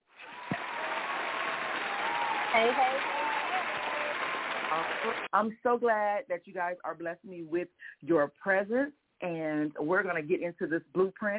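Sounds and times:
audience applauding a family of guests: 0.0 - 5.3
speech: 2.6 - 3.2, 4.8 - 11.3.

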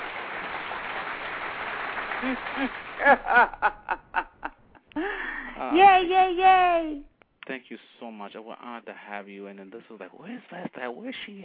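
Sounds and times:
audience round of applause: 0.0 - 4.4
speech: 2.2 - 4.0, 5.0 - 11.4
laughter: 2.2 - 5.4.

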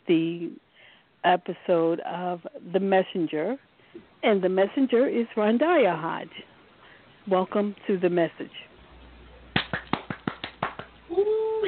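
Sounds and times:
speech: 0.1 - 0.6, 1.2 - 6.5, 7.2 - 8.7
one person clapping by hand as an applause sound effect: 9.5 - 11.0.

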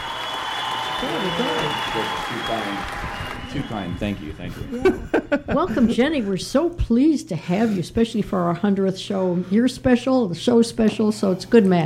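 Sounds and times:
audience applause: 0.0 - 4.7
laughter: 1.0 - 2.8, 3.8 - 6.5
speech: 1.0 - 11.8.

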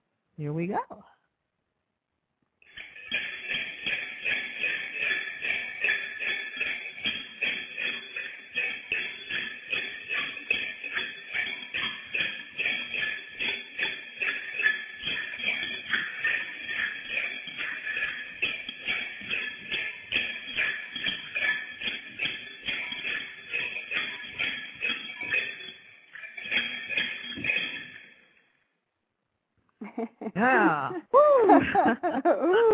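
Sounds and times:
speech: 0.4 - 1.2
bells played while jumping up and down: 2.7 - 28.5
laughter: 29.8 - 32.7.

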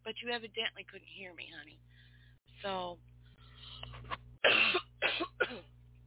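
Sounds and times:
speech: 0.1 - 1.9, 2.6 - 3.1, 5.4 - 5.8
person clearing throat: 4.4 - 5.7
person coughing harshly: 4.4 - 5.7.

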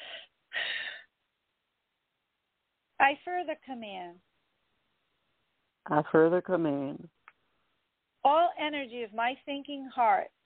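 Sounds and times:
person taking a short breath: 0.0 - 1.1
speech: 3.0 - 4.3, 5.9 - 7.2, 8.2 - 10.4.

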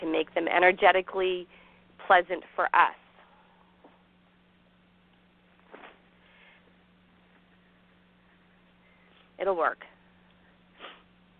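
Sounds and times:
faint steady hum: 0.0 - 11.3
speech: 0.2 - 3.0, 9.4 - 9.9
short breathy sniff: 10.8 - 11.1.

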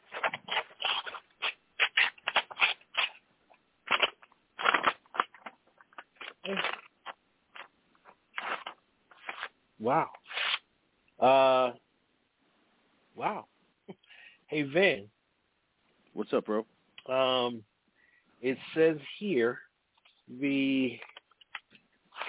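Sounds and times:
paper envelope being torn open and handled: 0.1 - 3.2, 3.8 - 9.5, 10.2 - 10.6
speech: 9.8 - 10.2, 11.2 - 11.8, 13.2 - 13.5, 14.5 - 15.2, 16.2 - 17.7, 18.4 - 19.6, 20.3 - 21.1.

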